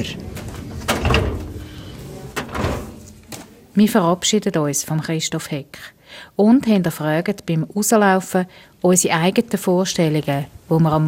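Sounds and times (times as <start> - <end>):
speech: 0.0 - 0.3, 3.8 - 11.0
metal office drawer with hanging files rolling and thudding shut: 0.0 - 3.3.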